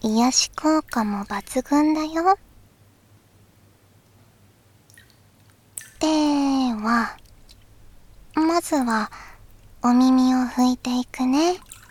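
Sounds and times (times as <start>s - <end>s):
warm bath water sloshing and splashing: 0.0s - 2.3s, 4.9s - 9.8s, 11.5s - 11.8s
speech: 0.0s - 2.5s, 6.0s - 7.2s, 8.4s - 11.8s.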